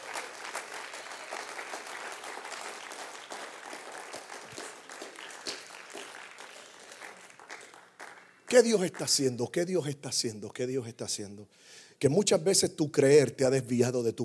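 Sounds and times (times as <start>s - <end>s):
crowd applause: 0.0s - 8.8s
speech: 8.5s - 14.2s.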